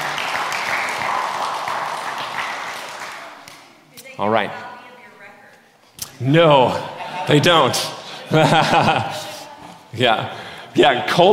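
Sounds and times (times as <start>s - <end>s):
audience applause: 0.0s - 3.4s
speech: 4.2s - 4.7s, 6.2s - 9.2s, 9.9s - 11.3s
laughter: 6.7s - 10.4s.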